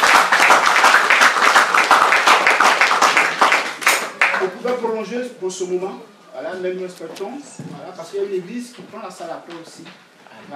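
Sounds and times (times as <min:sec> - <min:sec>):
audience at a church gathering clapping: 0:00.0 - 0:04.8
speech: 0:05.0 - 0:10.5.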